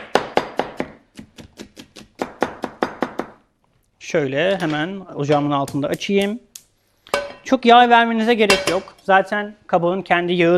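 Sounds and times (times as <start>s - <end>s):
knife chopping an onion: 0.0s - 3.4s
speech: 4.1s - 6.5s, 7.5s - 10.5s.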